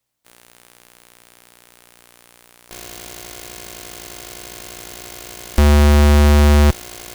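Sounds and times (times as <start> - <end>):
noise: 3.2 - 7.1.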